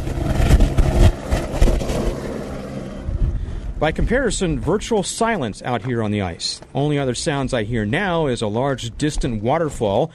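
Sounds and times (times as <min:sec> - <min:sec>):
helicopter taking off: 0:00.0 - 0:05.6
speech: 0:03.8 - 0:10.1.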